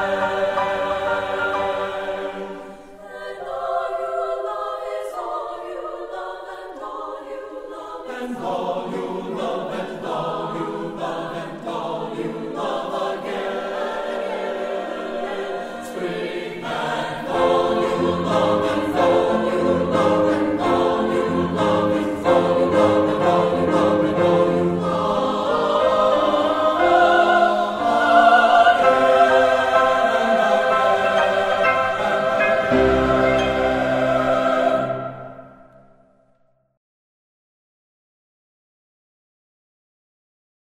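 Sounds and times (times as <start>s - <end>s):
SSATB choir singing: 0.0s - 36.2s
piano accompanying choir: 0.0s - 36.5s.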